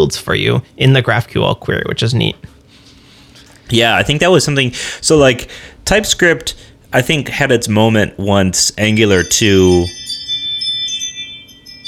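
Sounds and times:
speech: 0.0s - 2.5s, 3.7s - 10.2s
Ring smart video doorbell chime: 8.9s - 11.8s.

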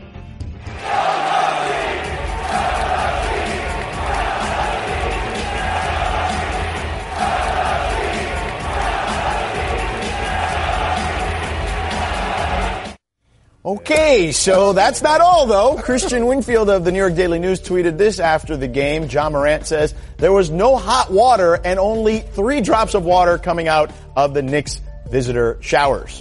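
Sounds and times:
basketball crowd roaring and yelling: 0.7s - 13.0s
speech: 13.8s - 26.1s.

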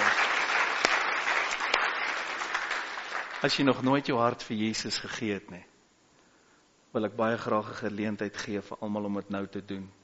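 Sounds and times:
audience applause: 0.0s - 3.7s
speech: 3.4s - 5.7s, 6.9s - 10.0s.

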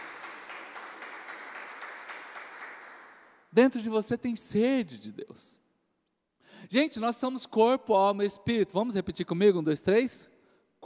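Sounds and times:
audience applauding: 0.0s - 3.4s
speech: 3.5s - 5.6s, 6.6s - 10.8s.

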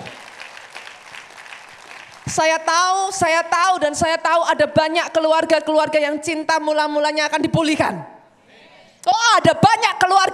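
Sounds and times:
audience applause: 0.0s - 2.4s
speech: 2.3s - 8.1s, 9.0s - 10.3s.

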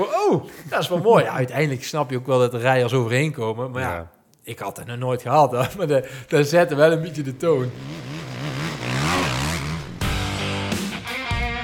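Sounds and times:
speech: 0.0s - 8.1s
racing engines roaring at the start of a large sand race: 7.7s - 10.7s.

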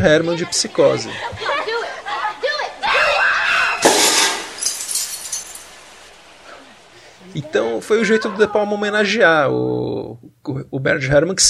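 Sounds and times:
speech: 0.0s - 1.6s, 7.4s - 11.4s
high-pitched screams: 2.8s - 4.0s
light bulb exploding: 3.8s - 5.6s
glass breaking: 3.8s - 6.0s.

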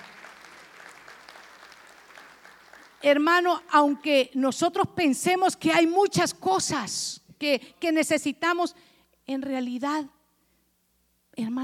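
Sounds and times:
audience clapping: 0.0s - 3.7s
speech: 3.0s - 10.2s, 11.4s - 11.6s.

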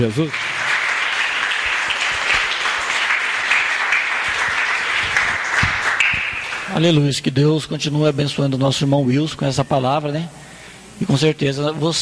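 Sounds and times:
speech: 0.0s - 0.5s, 6.7s - 10.4s, 11.0s - 11.9s
audience applause: 0.0s - 7.0s.

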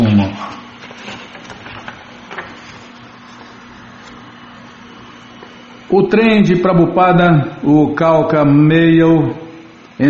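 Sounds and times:
book page turning: 0.4s - 4.3s
speech: 5.9s - 9.4s.

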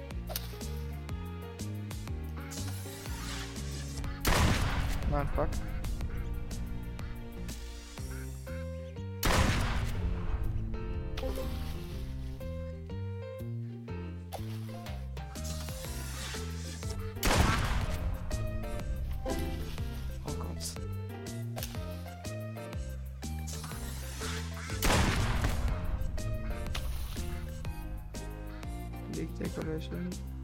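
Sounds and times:
looping tonal game backdrop: 0.0s - 30.4s
gunshots in the video game Duck Season: 4.1s - 6.2s, 9.2s - 10.6s, 17.2s - 18.3s, 24.7s - 27.6s
speech: 5.1s - 5.7s.

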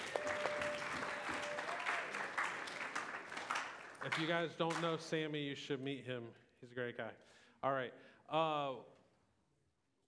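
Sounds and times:
audience applause: 0.0s - 4.9s
speech: 4.0s - 9.0s.

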